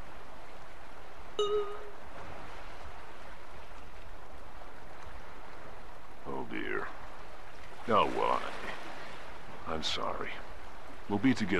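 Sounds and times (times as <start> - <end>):
ocean waves: 0.0 - 11.5
speech: 1.4 - 1.8, 9.7 - 10.5, 11.1 - 11.5
brief tonal chirp: 1.4 - 1.9.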